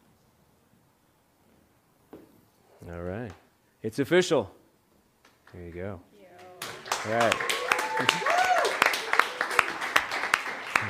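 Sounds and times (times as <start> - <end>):
speech: 2.8 - 4.6, 5.5 - 6.1, 7.0 - 8.4
audience clapping in an even beat: 6.4 - 10.8.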